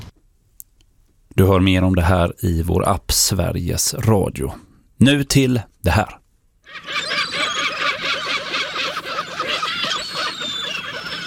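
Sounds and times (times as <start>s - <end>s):
speech: 1.4s - 7.2s
flock of gulls screeching: 6.6s - 11.2s.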